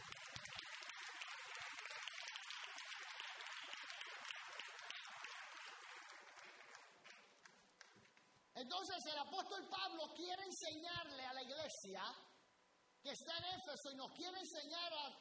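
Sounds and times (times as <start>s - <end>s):
audience applause: 0.0s - 8.2s
speech: 8.6s - 12.3s, 13.0s - 15.2s.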